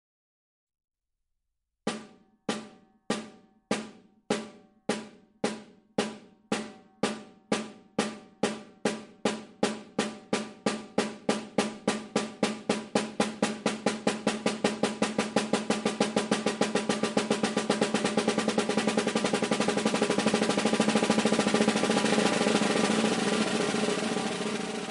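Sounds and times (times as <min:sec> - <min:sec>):
drum: 0:01.9 - 0:24.8.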